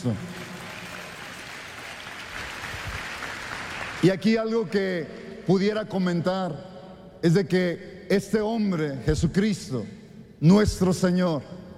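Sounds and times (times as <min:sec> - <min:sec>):
speech: 0:00.0 - 0:00.3, 0:04.0 - 0:11.6
crowd applauding: 0:00.0 - 0:04.3.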